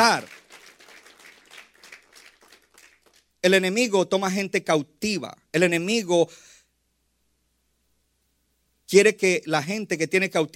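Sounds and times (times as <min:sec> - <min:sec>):
speech: 0:00.0 - 0:00.4, 0:03.4 - 0:06.5, 0:08.9 - 0:10.5
crowd clapping in a steady rhythmic beat: 0:00.0 - 0:03.4.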